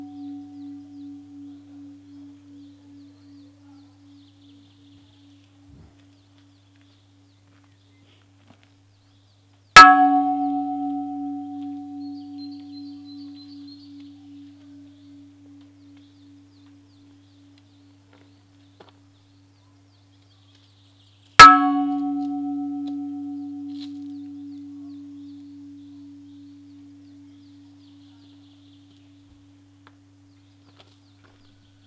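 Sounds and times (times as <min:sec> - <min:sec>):
bell ringing: 0:09.8 - 0:13.5, 0:21.4 - 0:25.6.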